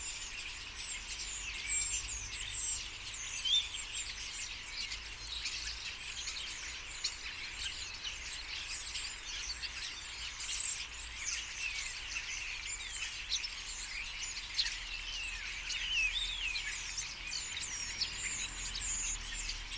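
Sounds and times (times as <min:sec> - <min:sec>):
common starlings chattering in a group: 0:00.0 - 0:19.7.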